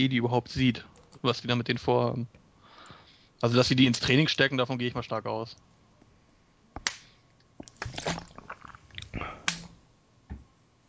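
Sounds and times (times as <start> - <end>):
speech: 0.0 - 2.4, 3.4 - 5.7
person drinking with an unmuted microphone: 7.6 - 9.8.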